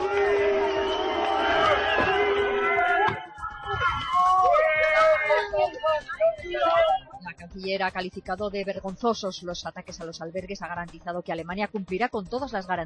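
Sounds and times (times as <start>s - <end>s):
crowd booing Merkel: 0.0s - 7.1s
speech: 7.3s - 12.8s.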